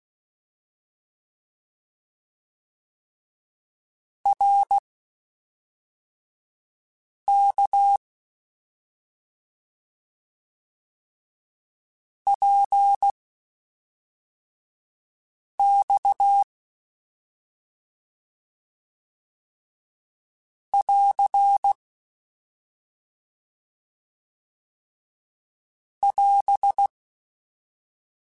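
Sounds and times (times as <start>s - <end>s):
CW Morse code groups in mixed short runs: 4.3s - 4.8s, 12.3s - 13.1s, 15.6s - 16.4s, 20.7s - 21.8s, 26.1s - 26.9s.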